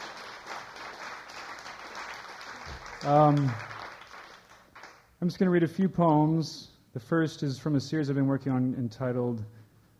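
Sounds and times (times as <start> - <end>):
audience applause: 0.0 - 5.1
speech: 3.0 - 3.7, 5.2 - 9.6.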